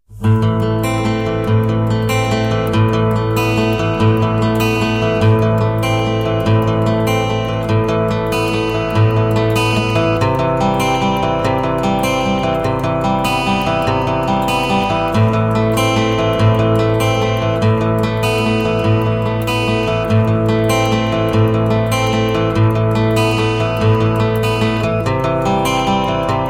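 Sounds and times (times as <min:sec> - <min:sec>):
guitar: 0:00.0 - 0:26.4.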